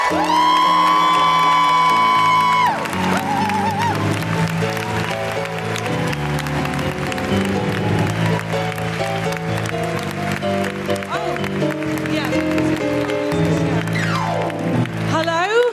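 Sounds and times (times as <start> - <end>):
audience woo-hoo cheers: 0.0 - 8.7
live feminist comedy show audience clapping: 0.0 - 15.7.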